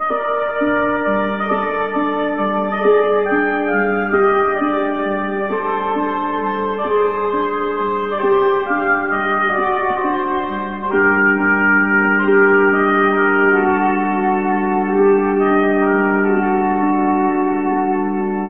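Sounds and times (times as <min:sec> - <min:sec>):
sad saxophone: 0:00.0 - 0:18.4.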